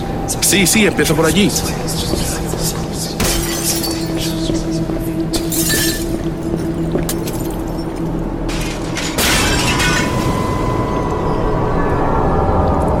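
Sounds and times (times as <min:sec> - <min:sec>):
steady droning background: 0:00.0 - 0:12.9
speech: 0:00.3 - 0:02.8
mirrors being smashed in a haunted-mansion radio drama: 0:03.2 - 0:04.3, 0:05.4 - 0:07.9, 0:08.5 - 0:10.9.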